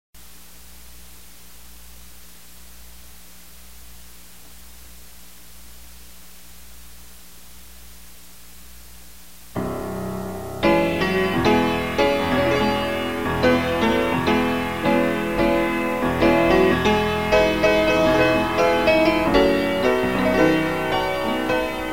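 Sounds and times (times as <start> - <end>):
piano: 9.6 - 21.9.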